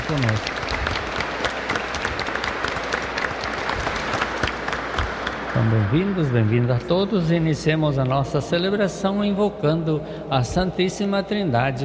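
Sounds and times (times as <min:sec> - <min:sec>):
church audience applause: 0:00.0 - 0:06.4
speech: 0:00.1 - 0:00.6, 0:05.6 - 0:11.8.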